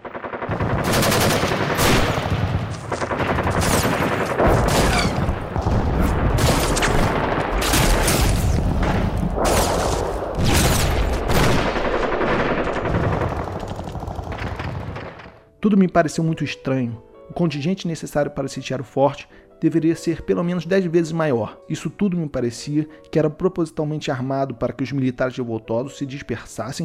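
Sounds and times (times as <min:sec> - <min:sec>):
gunfire from soldiers charging out of a fort shooting at a besieging troop: 0:00.0 - 0:15.2
speech: 0:15.7 - 0:26.8.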